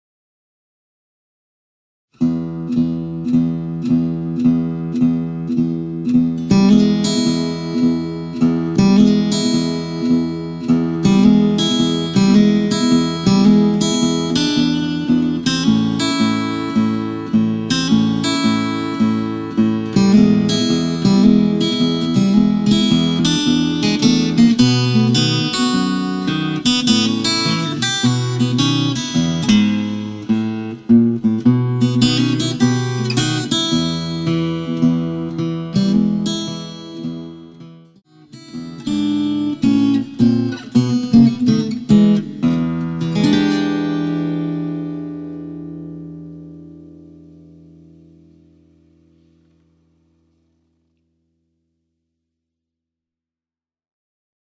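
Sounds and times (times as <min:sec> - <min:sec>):
easy blues music: 0:02.2 - 0:50.0.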